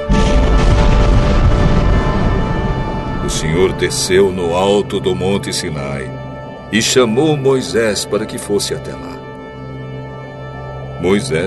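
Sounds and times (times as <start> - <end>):
loud deep rumble of thunder: 0.0 - 10.9
speech: 3.3 - 9.2, 11.0 - 11.4.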